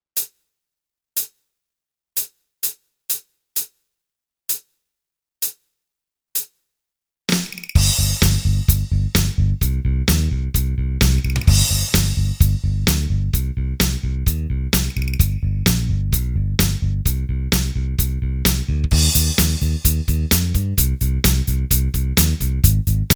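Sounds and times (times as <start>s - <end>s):
drums: 2.2s - 3.8s, 7.3s - 23.1s
bass: 7.8s - 23.1s.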